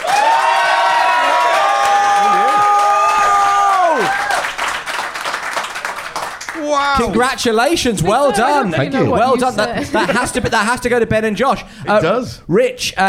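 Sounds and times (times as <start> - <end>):
audience whoops and shouted cheers after a debate vote: 0.0 - 4.6
audience clapping after a debate vote: 0.0 - 7.6
speech: 6.8 - 13.0
laughter: 7.9 - 10.9.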